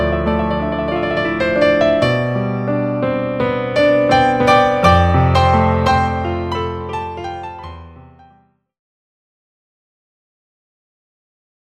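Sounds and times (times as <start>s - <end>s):
solo piano playing: 0.0s - 8.6s.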